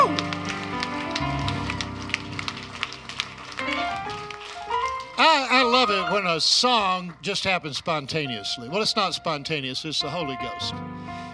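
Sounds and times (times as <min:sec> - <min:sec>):
audience hand clapping: 0:00.0 - 0:08.4
speech: 0:05.4 - 0:11.0.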